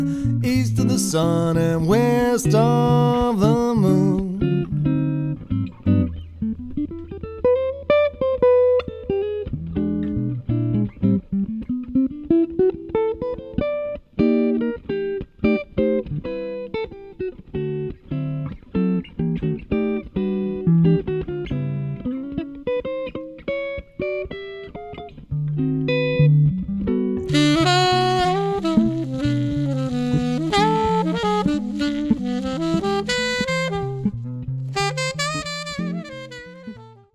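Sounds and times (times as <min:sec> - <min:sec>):
saxophone: 0:00.0 - 0:06.2, 0:27.2 - 0:37.1
guitar: 0:00.0 - 0:37.1.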